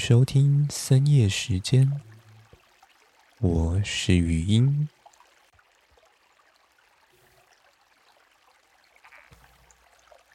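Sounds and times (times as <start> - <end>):
speech: 0.0 - 2.1, 3.4 - 5.0
stream water flowing: 0.0 - 10.3
frogs croaking: 8.9 - 9.5.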